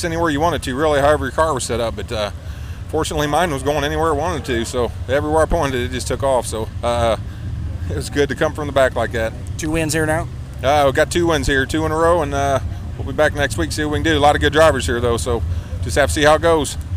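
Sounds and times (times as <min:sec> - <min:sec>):
IMCA Sport Mod race car engines at a raceway: 0:00.0 - 0:16.9.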